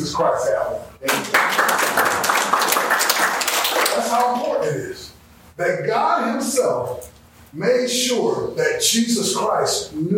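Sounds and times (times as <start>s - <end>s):
speech: 0.0s - 1.7s, 4.0s - 10.1s
audience applause: 1.1s - 4.4s.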